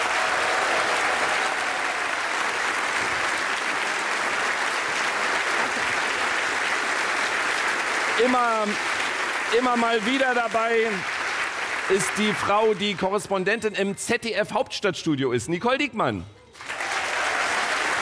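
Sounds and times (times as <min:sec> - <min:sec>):
audience applause: 0:00.0 - 0:13.5, 0:16.6 - 0:18.0
speech: 0:08.2 - 0:08.9, 0:09.5 - 0:11.1, 0:11.9 - 0:16.4.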